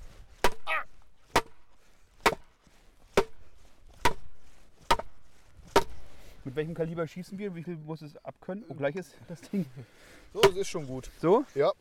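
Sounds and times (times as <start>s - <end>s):
hammer driving wooden board into the ground: 0.4s - 6.1s, 10.4s - 11.0s
speech: 6.5s - 11.7s.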